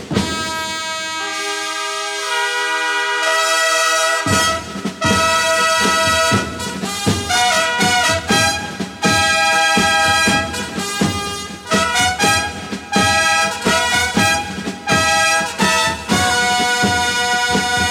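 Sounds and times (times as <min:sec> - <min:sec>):
soul fanfare: 0:00.1 - 0:17.8.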